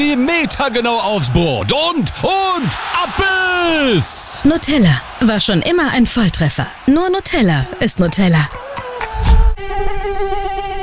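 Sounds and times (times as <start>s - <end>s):
speech: 0.0s - 8.6s
mosquito buzzing: 8.6s - 10.8s
brief thump: 9.1s - 9.6s.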